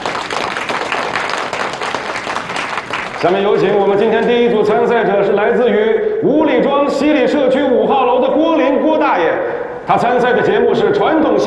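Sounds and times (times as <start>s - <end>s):
audience applause: 0.0s - 3.4s
speech: 3.2s - 11.4s.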